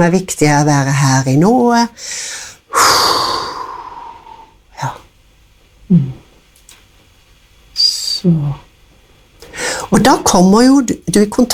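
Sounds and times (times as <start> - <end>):
speech: 0.0 - 3.4, 4.8 - 5.0, 5.9 - 6.2, 8.2 - 8.6, 9.9 - 11.5
person breathing in and out: 2.0 - 4.6, 9.4 - 9.9.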